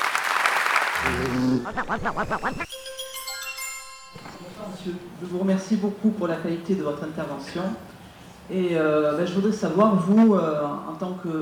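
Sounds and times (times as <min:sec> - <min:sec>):
audience applause: 0:00.0 - 0:02.7
speech: 0:01.0 - 0:02.8, 0:04.6 - 0:11.4.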